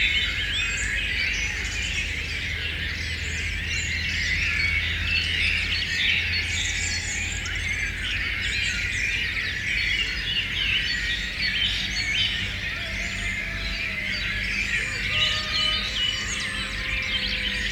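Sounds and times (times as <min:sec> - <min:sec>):
birds singing dawn chorus: 0:00.0 - 0:17.7.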